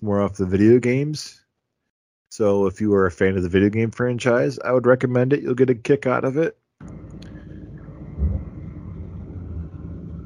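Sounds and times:
speech: 0.0s - 1.4s, 2.3s - 7.2s
car engine rumble while driving: 6.8s - 10.2s.

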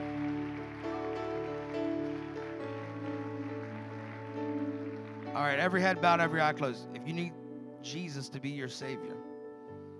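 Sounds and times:
audience hand clapping: 0.0s - 6.6s
sustained organ-like keyboard chords: 0.0s - 9.9s
speech: 5.4s - 9.3s.

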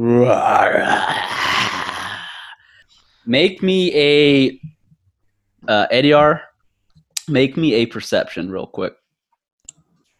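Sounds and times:
speech: 0.0s - 2.0s, 3.2s - 4.7s, 5.6s - 6.5s, 7.3s - 9.0s
person's voice imitating a creature's rasping growl: 0.0s - 2.6s.

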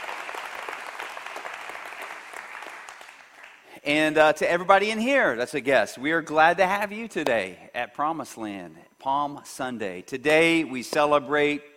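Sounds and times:
church congregation applause welcoming guests on Palm Sunday: 0.0s - 3.7s
speech: 3.8s - 11.7s.

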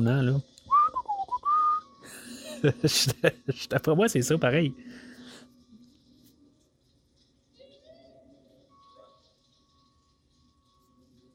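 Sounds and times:
speech: 0.0s - 0.5s, 2.6s - 5.1s
Michael Myers whistling while taking a walk: 0.7s - 2.1s
laughter: 2.1s - 3.7s.

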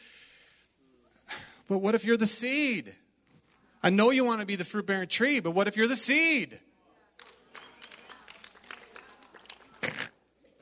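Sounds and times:
speech: 1.7s - 3.0s, 3.8s - 6.7s
golf clap, light polite applause: 7.0s - 10.6s.

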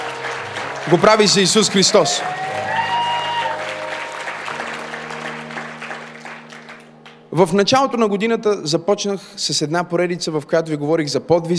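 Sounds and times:
church congregation applauding: 0.0s - 7.4s
speech: 0.9s - 2.7s, 7.4s - 11.5s.

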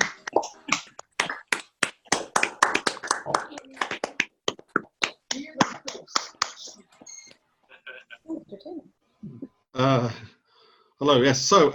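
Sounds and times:
online meeting participants applauding: 0.0s - 6.8s
speech: 8.6s - 10.2s, 11.0s - 11.7s.

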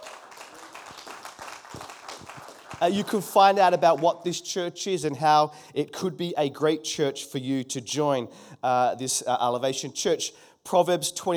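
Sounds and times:
audience clapping for first-time visitors: 0.0s - 4.2s
speech: 2.8s - 11.3s.

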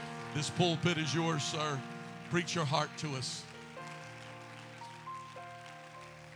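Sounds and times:
sustained organ-like chords: 0.0s - 4.4s
audience applauding: 0.0s - 6.3s
speech: 0.4s - 3.5s.

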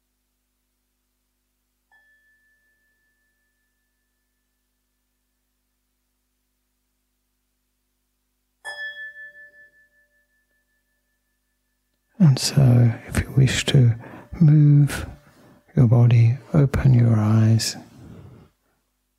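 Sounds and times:
meditation bell ringing: 1.9s - 5.7s, 8.6s - 15.7s
speech: 12.2s - 15.2s, 15.8s - 17.9s.

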